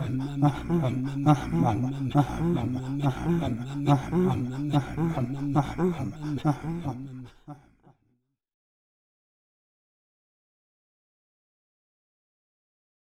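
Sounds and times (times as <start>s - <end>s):
Inuit throat singing: 0.0s - 7.7s.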